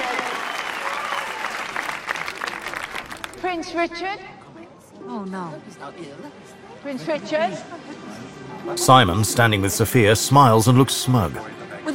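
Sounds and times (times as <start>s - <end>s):
crowd applauding a prince at a royal ceremony: 0.0s - 3.5s
speech: 3.4s - 4.4s, 5.1s - 11.9s.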